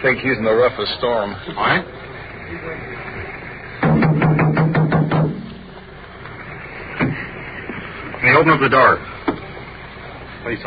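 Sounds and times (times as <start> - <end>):
speech: 0.0 - 3.2, 8.2 - 9.2, 10.4 - 10.6
car being rocked: 3.2 - 10.6
officers banging on a car: 3.8 - 5.7, 7.0 - 7.3.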